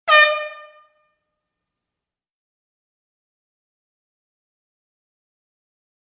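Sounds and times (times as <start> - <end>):
short air horn blast in a stadium arena: 0.0 - 1.0.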